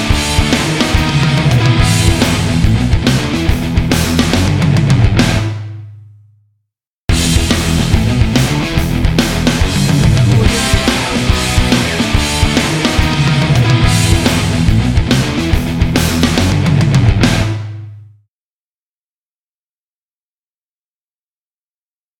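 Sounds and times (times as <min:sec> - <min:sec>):
classic hard rock logo music: 0:00.0 - 0:05.7, 0:07.1 - 0:18.0.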